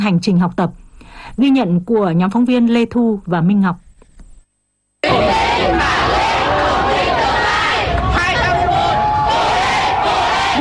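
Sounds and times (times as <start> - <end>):
speech: 0.0 - 3.8
youth volunteers and parents shouting and whooping for exam candidates: 5.0 - 10.6.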